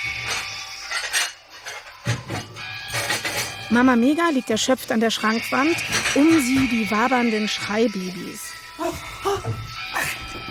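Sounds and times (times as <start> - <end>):
dirty dishes clinking in a video game: 0.0 - 4.0, 5.3 - 7.8, 8.8 - 10.4
speech: 3.7 - 9.6.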